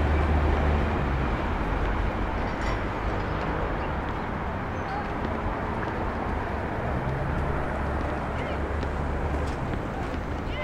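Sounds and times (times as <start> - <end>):
city traffic rumble from Starr Street rooftop in Brooklyn: 0.0 - 10.6.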